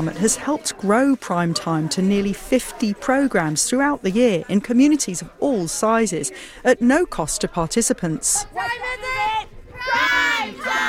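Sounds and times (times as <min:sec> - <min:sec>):
speech: 0:00.0 - 0:09.1
families and children cheering in a suburban park in Lincoln: 0:08.6 - 0:10.8.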